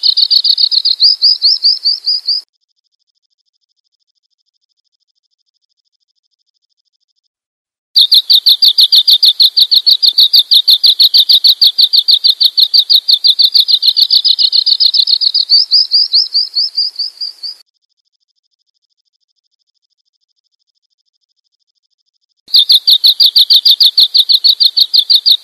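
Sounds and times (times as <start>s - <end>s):
bird chirping: 0.0s - 2.5s, 8.0s - 17.6s, 22.5s - 25.4s.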